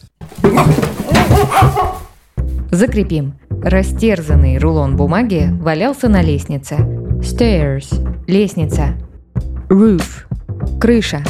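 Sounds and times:
dogs barking: 0:00.3 - 0:02.2
speech: 0:02.7 - 0:11.2.

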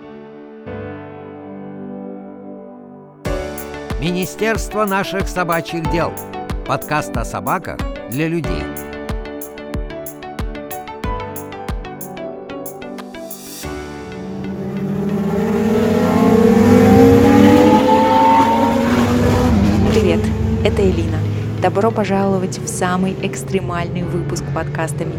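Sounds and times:
rhythmic thumping: 0:03.5 - 0:13.6
speech: 0:04.0 - 0:08.9, 0:21.6 - 0:25.1
racing car engines roaring while speeding past: 0:14.8 - 0:21.7.

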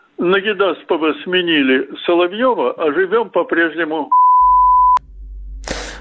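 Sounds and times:
speech: 0:00.2 - 0:04.2
censorship bleep: 0:04.1 - 0:05.0
low hum: 0:04.4 - 0:05.9
hissy noise burst: 0:05.6 - 0:05.9.

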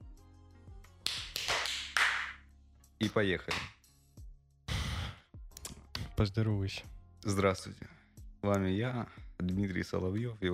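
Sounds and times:
hand clap: 0:00.9 - 0:02.4, 0:03.0 - 0:03.8
speech: 0:03.0 - 0:03.7, 0:06.2 - 0:10.5.

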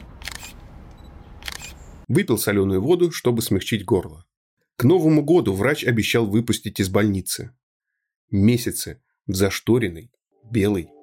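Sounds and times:
camera shutter taking a photo: 0:00.0 - 0:00.7, 0:01.4 - 0:01.8
speech: 0:02.1 - 0:07.6, 0:08.3 - 0:11.0.

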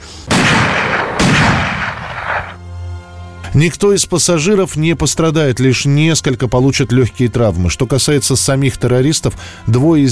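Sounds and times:
gunfire from a weapon: 0:00.3 - 0:02.6
speech: 0:03.6 - 0:10.0.

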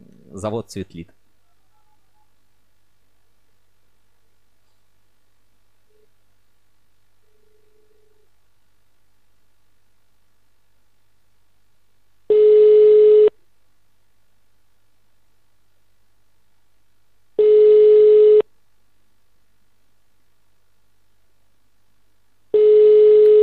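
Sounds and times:
speech: 0:00.3 - 0:01.2
telephone ringing tone: 0:12.3 - 0:13.3, 0:17.4 - 0:18.4, 0:22.6 - 0:23.4.

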